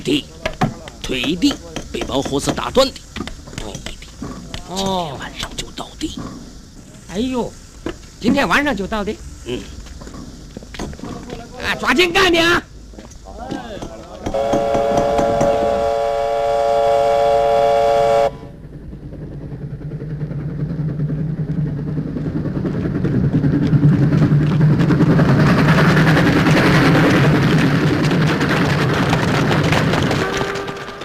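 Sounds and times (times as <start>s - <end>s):
speech: 0.0s - 0.4s, 1.1s - 3.0s, 4.7s - 6.4s, 7.1s - 7.6s, 8.2s - 9.8s, 11.6s - 12.7s, 14.3s - 15.0s
steam train rolling on rails: 0.0s - 31.0s
steam train whistle: 14.3s - 18.6s, 29.9s - 31.0s.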